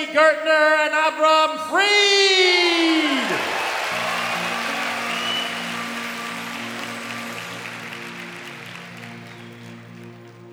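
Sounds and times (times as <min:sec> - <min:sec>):
speech: 0:00.0 - 0:03.1
audience applause welcoming a singing duet: 0:02.3 - 0:10.5
sustained low musical notes: 0:04.0 - 0:10.5.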